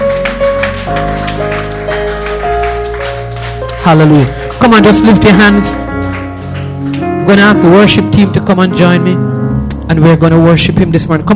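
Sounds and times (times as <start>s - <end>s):
crowd clapping in rhythm: 0.0s - 8.5s
sustained keyboard or organ chords: 0.0s - 11.3s
speech: 3.9s - 5.9s, 7.3s - 9.3s, 9.9s - 11.3s.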